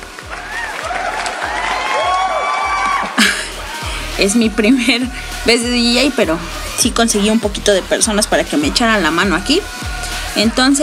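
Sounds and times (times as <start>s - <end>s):
canned applause sound effect: 0.0s - 4.1s
cheers and whoops: 0.1s - 4.3s
low rhythmic pulse: 2.9s - 10.8s
speech: 4.2s - 10.8s.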